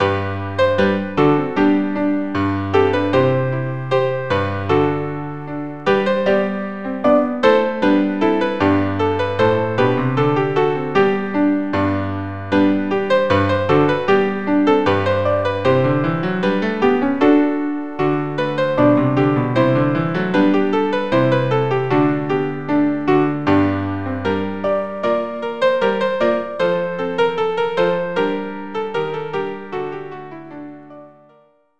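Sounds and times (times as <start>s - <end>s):
ballet music: 0.0s - 31.3s.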